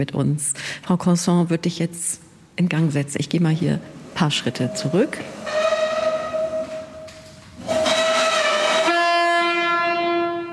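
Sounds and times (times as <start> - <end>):
speech: 0.0 - 5.7
ship's horn signal: 5.4 - 10.5.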